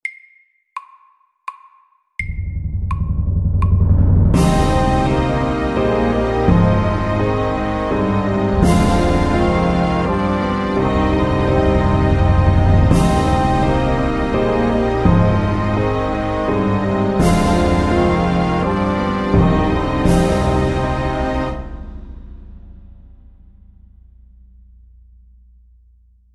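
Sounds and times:
film music: 0:02.2 - 0:23.0.

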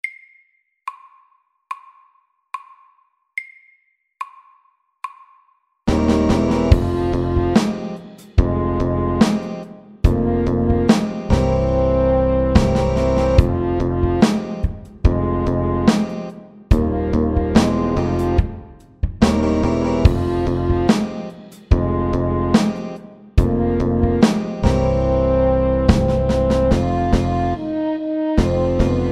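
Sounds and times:
funk music: 0:05.9 - 0:29.1.

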